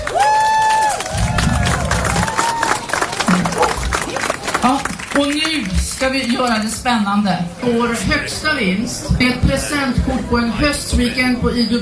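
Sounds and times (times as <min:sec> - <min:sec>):
audience applause: 0:00.0 - 0:06.7
speech: 0:04.6 - 0:11.8.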